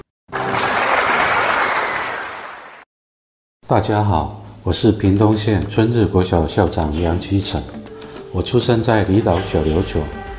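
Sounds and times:
crowd applause: 0:00.3 - 0:02.8
speech: 0:03.7 - 0:10.3.

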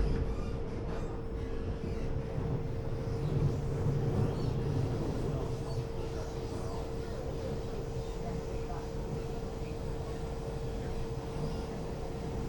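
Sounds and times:
local express train carriage rumbling between Nangang and Qidu: 0:00.2 - 0:12.4
faint voices murmuring: 0:03.5 - 0:12.4.

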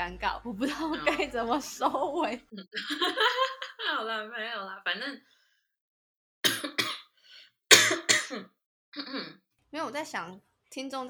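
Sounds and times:
speech: 0:00.0 - 0:05.4, 0:08.3 - 0:11.0
laughter: 0:00.6 - 0:04.2
harsh coughing: 0:02.6 - 0:03.9, 0:06.4 - 0:09.4.

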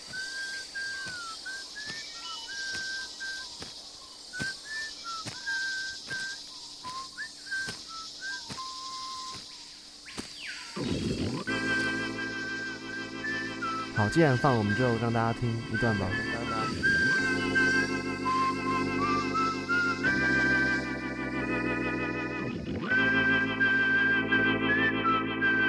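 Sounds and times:
footsteps: 0:00.0 - 0:11.9
high buzz of insects: 0:00.0 - 0:25.6
person whistling a wandering tune: 0:00.0 - 0:25.6
sustained tone: 0:10.8 - 0:25.6
speech: 0:14.0 - 0:17.0.

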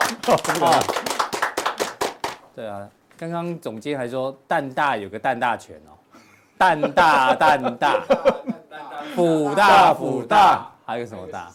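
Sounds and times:
studio applause: 0:00.0 - 0:02.4
laughter: 0:00.1 - 0:01.1, 0:06.6 - 0:10.0
speech: 0:00.2 - 0:01.1, 0:02.6 - 0:08.4, 0:09.0 - 0:11.5.

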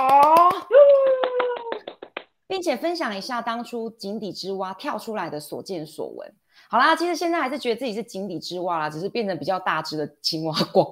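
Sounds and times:
hands clapping: 0:00.0 - 0:02.4
speech: 0:02.5 - 0:10.9.

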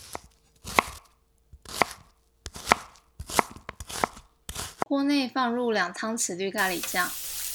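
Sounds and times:
knife chopping vegetables on a cutting board: 0:00.0 - 0:04.9
speech: 0:04.9 - 0:07.2.

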